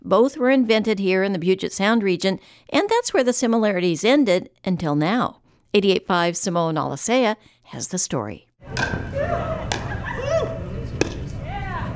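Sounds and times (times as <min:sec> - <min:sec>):
speech: 0:00.1 - 0:09.5
wiffle ball hit with paddles made from airplane scraps: 0:08.7 - 0:11.4.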